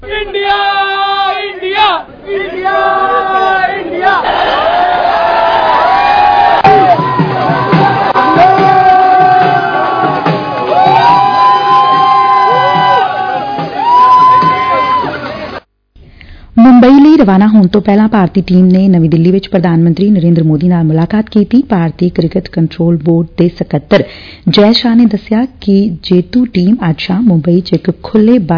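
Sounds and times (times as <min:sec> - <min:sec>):
cricket fans cheering at Delhi airport welcoming the Indian team: 0:00.0 - 0:15.6
speech: 0:17.2 - 0:28.5.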